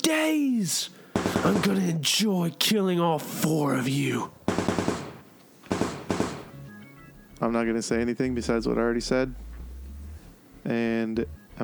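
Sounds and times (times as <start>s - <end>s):
speech: 0.1s - 4.4s, 7.4s - 9.5s, 10.6s - 11.6s
automatic gunfire sound effect: 1.2s - 1.9s, 4.5s - 6.6s.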